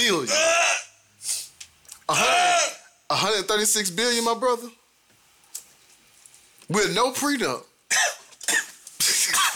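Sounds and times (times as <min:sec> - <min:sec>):
speech: 0:00.0 - 0:00.6, 0:02.1 - 0:02.4, 0:03.4 - 0:04.8, 0:06.7 - 0:08.0
person coughing, choking on chicken: 0:07.9 - 0:09.5.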